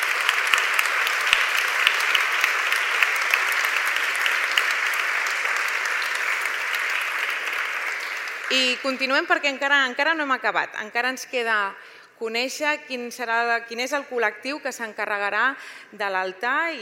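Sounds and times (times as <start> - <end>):
audience applause: 0.0 - 9.2
speech: 8.5 - 16.7.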